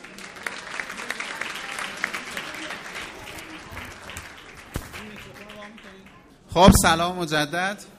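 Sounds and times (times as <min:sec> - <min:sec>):
audience applause: 0:00.0 - 0:06.2
speech: 0:06.5 - 0:07.9.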